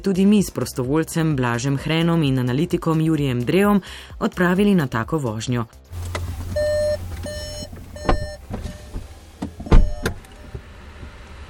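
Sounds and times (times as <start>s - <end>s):
speech: 0.0s - 6.2s
low hum: 5.9s - 10.5s
car warning chimes as a vehicle fitted with test equipment is switched on: 6.0s - 10.6s
dull thumps and clunks: 6.0s - 11.2s.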